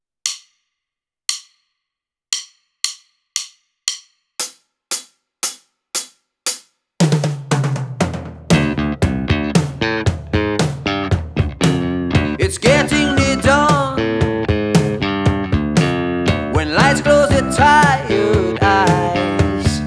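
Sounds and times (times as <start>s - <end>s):
backing music: 7.1s - 19.8s.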